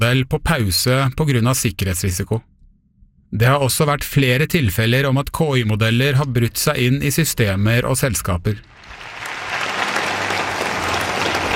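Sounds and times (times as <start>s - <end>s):
speech: 0.0s - 2.5s, 3.3s - 8.9s
crowd applause and cheering: 8.7s - 11.5s.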